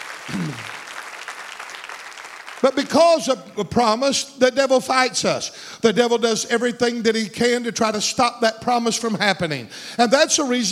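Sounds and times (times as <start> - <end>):
audience applause: 0.0 - 2.7
person calling out: 0.3 - 0.7
speech: 0.3 - 0.8, 2.6 - 10.7.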